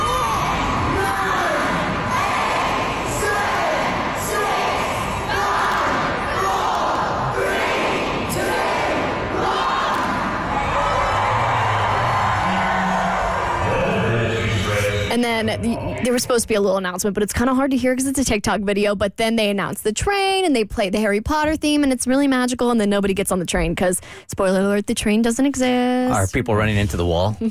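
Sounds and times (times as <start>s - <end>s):
crowd counting down and cheering at station: 0.0s - 15.2s
speech: 15.4s - 27.4s.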